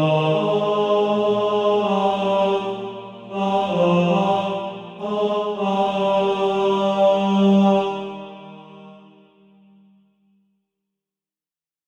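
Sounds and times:
male choir singing bass: 0:00.0 - 0:09.2.

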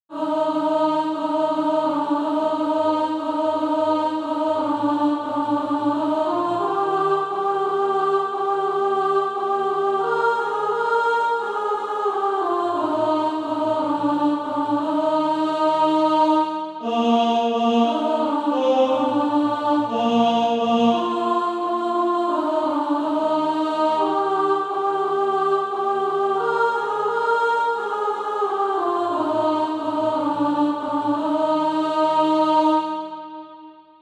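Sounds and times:
alto voice singing SATB practice music: 0:00.1 - 0:33.6.

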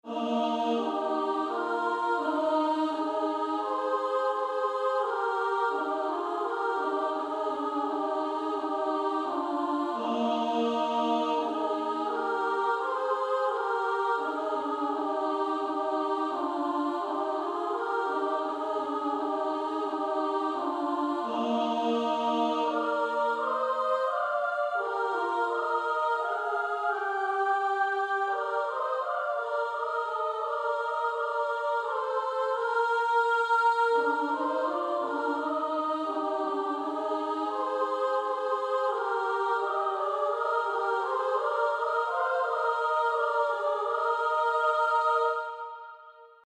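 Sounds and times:
female choir singing soprano and alto: 0:00.0 - 0:46.4.

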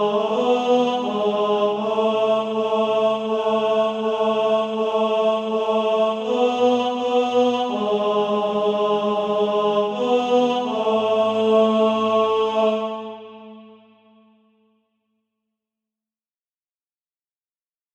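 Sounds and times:
tenor voice singing SATB practice music: 0:00.0 - 0:13.7.

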